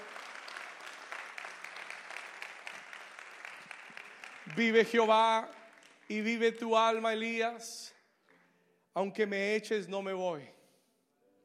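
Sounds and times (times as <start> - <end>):
audience applause: 0.0 - 6.1
speech: 4.5 - 8.0, 9.0 - 10.6.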